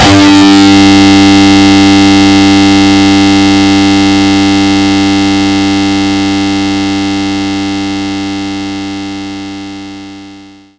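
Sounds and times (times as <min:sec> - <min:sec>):
distortion guitar low G2 note: 0:00.0 - 0:07.5.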